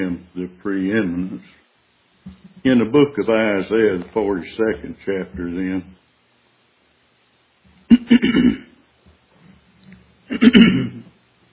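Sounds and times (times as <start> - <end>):
speech: 0.0 - 1.6, 2.2 - 6.0, 7.9 - 8.7, 10.3 - 11.0
preacher clearing his throat during a sermon: 7.9 - 8.8, 10.3 - 11.2.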